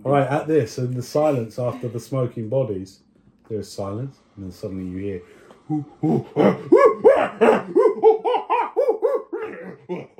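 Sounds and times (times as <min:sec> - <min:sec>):
speech: 0:00.0 - 0:08.2
voice imitating a laughing hyena: 0:05.7 - 0:10.1.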